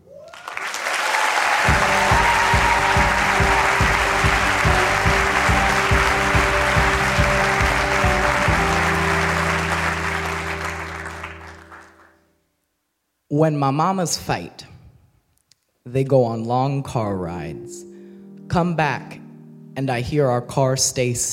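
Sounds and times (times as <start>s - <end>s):
audience applause: 0.2s - 12.1s
rhythmic low-pitched music: 1.7s - 11.5s
speech: 13.4s - 14.7s, 15.9s - 17.9s, 18.5s - 19.2s, 19.8s - 21.3s.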